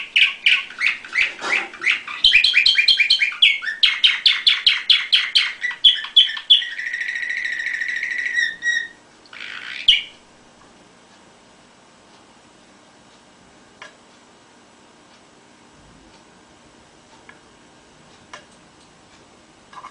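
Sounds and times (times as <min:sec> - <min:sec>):
canary singing: 0:00.0 - 0:10.3.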